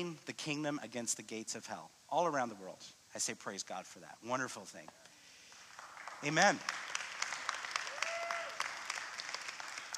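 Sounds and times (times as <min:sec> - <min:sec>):
speech: 0:00.0 - 0:05.1, 0:06.2 - 0:06.8
audience clapping: 0:05.5 - 0:09.9.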